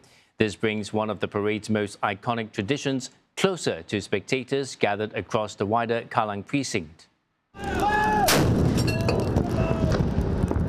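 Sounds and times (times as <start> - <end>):
speech: 0.4 - 8.0
25-pounder howitzer guns firing a 21-gun salute at the National Day Parade: 8.2 - 10.6.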